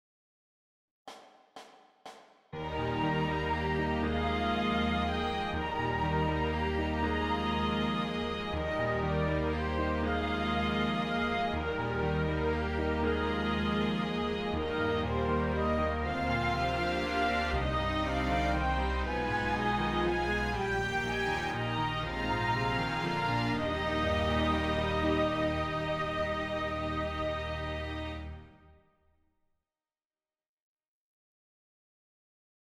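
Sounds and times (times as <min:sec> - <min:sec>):
piano concerto: 0:02.6 - 0:28.2.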